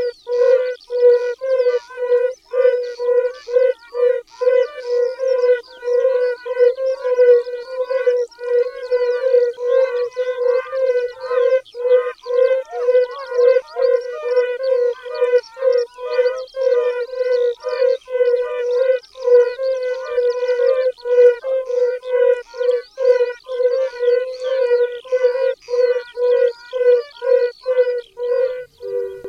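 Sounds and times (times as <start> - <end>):
Kumak gorski toad calling: 0.0 - 29.2.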